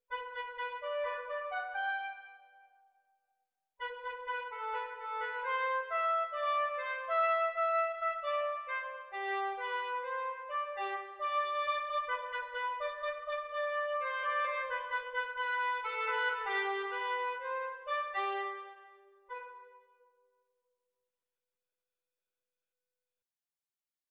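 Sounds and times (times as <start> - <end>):
oboe duet: 0.1 - 2.4, 3.8 - 19.8.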